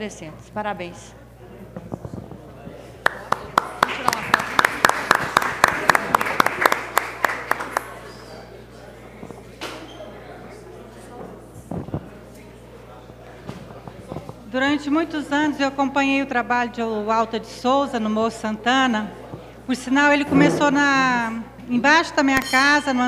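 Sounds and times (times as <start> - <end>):
speech: 0.0 - 1.2, 14.6 - 23.0
small group clapping: 3.0 - 8.4.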